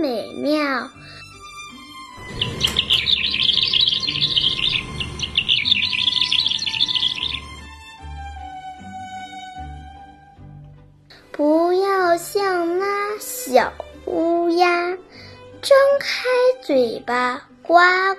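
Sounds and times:
speech: 0:00.0 - 0:01.2, 0:11.4 - 0:18.1
soft low musical tones: 0:00.0 - 0:18.1
lark singing: 0:02.2 - 0:07.8.

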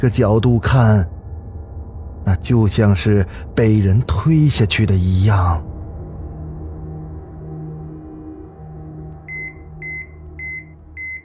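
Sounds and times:
speech: 0:00.0 - 0:01.2, 0:02.2 - 0:05.7
alarm on a hospital ward's IV infusion line beeping: 0:09.3 - 0:11.2.

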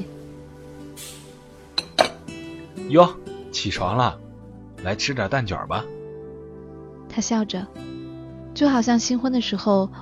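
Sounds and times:
clanging metal pots and pans: 0:01.8 - 0:02.3
speech: 0:02.9 - 0:04.2, 0:04.8 - 0:06.0, 0:07.2 - 0:07.8, 0:08.6 - 0:09.9.

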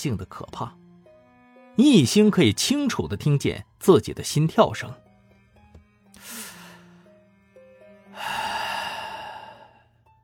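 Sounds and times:
speech: 0:00.0 - 0:00.8, 0:01.8 - 0:05.0
deep breathing: 0:06.2 - 0:07.3, 0:08.1 - 0:10.1.

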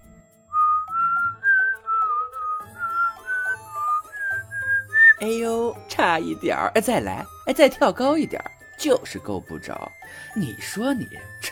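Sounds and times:
person whistling teasingly: 0:00.6 - 0:05.2
speech: 0:05.2 - 0:11.5.

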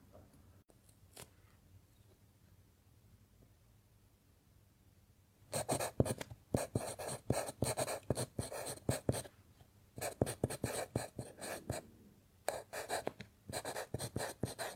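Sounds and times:
faint low hum: 0:00.0 - 0:14.7
pencil writing on paper: 0:05.6 - 0:09.3, 0:10.0 - 0:11.8, 0:12.5 - 0:14.7.

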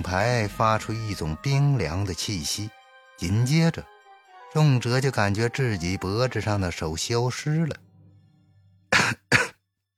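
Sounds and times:
speech: 0:00.0 - 0:07.9
violent coughing: 0:08.9 - 0:09.7.

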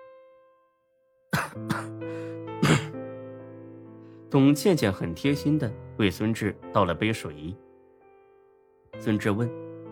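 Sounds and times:
person coughing from choking on smoke: 0:01.3 - 0:02.0, 0:02.6 - 0:03.0
speech: 0:01.5 - 0:02.9, 0:04.3 - 0:07.6, 0:09.0 - 0:09.6.

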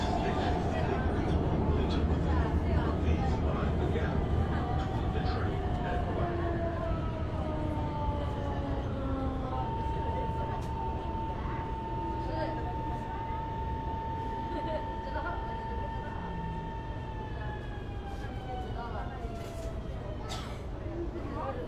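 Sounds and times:
faint voices: 0:00.0 - 0:21.6
low roar of train and air conditioning inside a Shenzhen metro car: 0:00.0 - 0:21.6.

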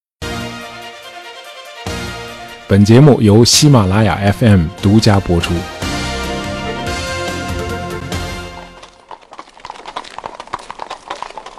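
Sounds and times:
music: 0:00.2 - 0:09.0
speech: 0:02.7 - 0:05.7
horse hooves clopping on a cobblestone street: 0:05.8 - 0:11.5.

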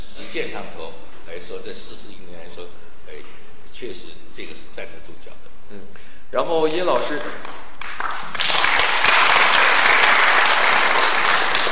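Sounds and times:
speech: 0:00.3 - 0:11.0
audience applause: 0:07.0 - 0:11.7.

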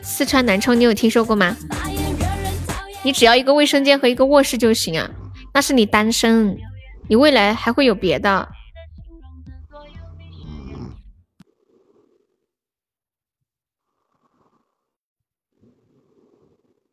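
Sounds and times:
speech: 0:00.0 - 0:01.9, 0:03.0 - 0:08.6
loud snoring: 0:01.8 - 0:03.1, 0:04.4 - 0:08.1, 0:09.7 - 0:12.6, 0:13.8 - 0:16.9.

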